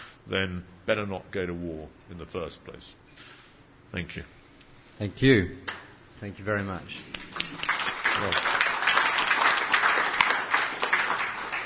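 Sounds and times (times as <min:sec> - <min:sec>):
speech: 0:00.3 - 0:04.4, 0:05.0 - 0:08.6
audience applause for a speaker: 0:07.1 - 0:11.6.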